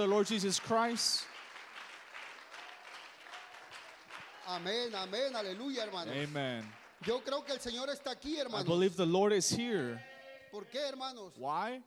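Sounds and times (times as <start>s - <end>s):
speech: 0.0s - 1.4s, 4.5s - 11.8s
audience applause: 0.0s - 8.2s.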